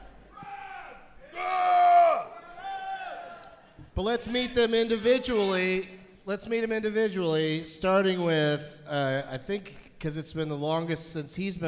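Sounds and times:
audience yelling out names: 0.3 - 3.6
speech: 4.0 - 11.6.

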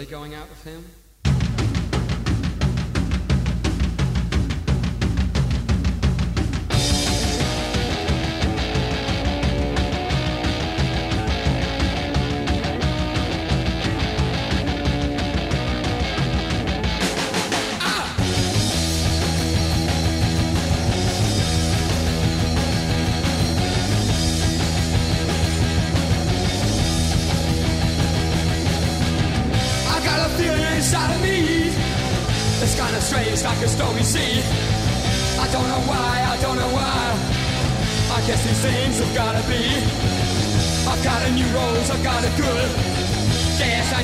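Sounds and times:
speech: 0.0 - 1.0, 38.3 - 42.9
1976 punk rock song: 1.2 - 44.0.

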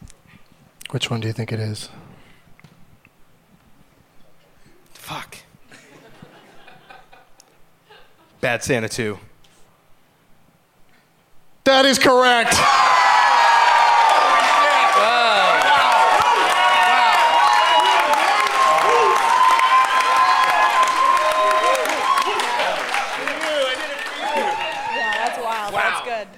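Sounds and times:
speech: 0.9 - 2.0, 8.5 - 9.3, 11.7 - 12.9
laughter: 5.7 - 8.4
audience cheering after a correct answer in a film quiz game: 12.2 - 26.3.

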